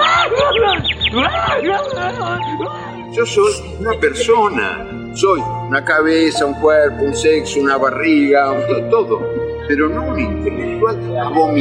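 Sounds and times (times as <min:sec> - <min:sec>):
small bird chirping: 0:00.0 - 0:02.9
laughter: 0:00.0 - 0:11.6
speech: 0:01.6 - 0:11.6.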